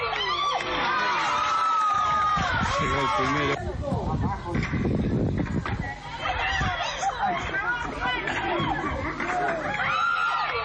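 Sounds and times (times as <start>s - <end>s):
dense crowd screaming and shouting: 0.0s - 3.6s, 5.8s - 10.6s
speech: 2.8s - 6.0s, 7.2s - 9.8s
laughter: 3.5s - 4.9s, 6.2s - 10.6s.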